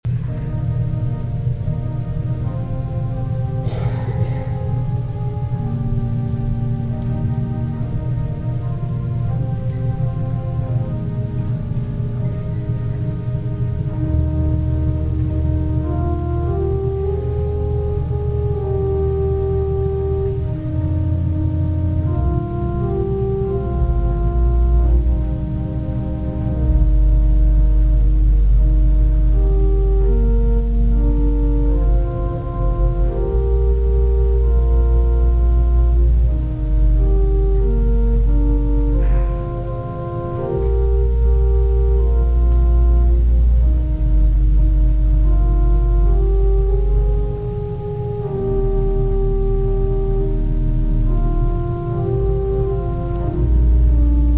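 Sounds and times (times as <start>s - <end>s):
organ music: 0.0s - 54.3s.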